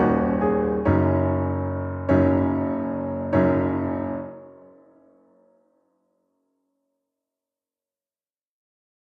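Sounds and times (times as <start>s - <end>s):
simple piano: 0.0s - 5.8s.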